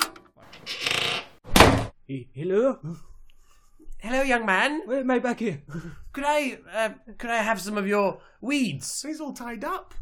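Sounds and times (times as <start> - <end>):
trap door releasing thunk: 1.5 - 1.9
speech: 2.1 - 3.1, 4.0 - 10.0.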